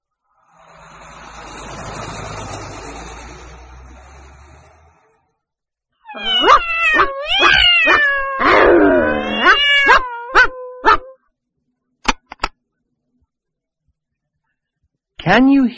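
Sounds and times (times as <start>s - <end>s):
cat meowing: 6.0s - 11.2s
dog barking: 9.9s - 11.1s.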